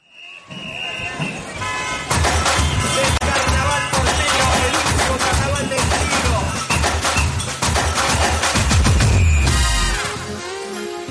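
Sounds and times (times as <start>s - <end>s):
Turkish Latin pop ringtone: 2.4s - 10.0s.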